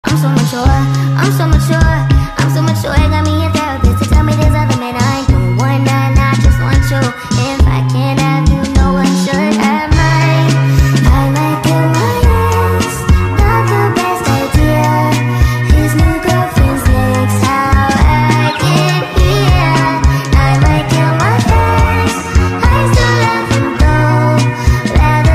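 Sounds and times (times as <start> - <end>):
TikTok sped-up music: 0.1 - 25.3.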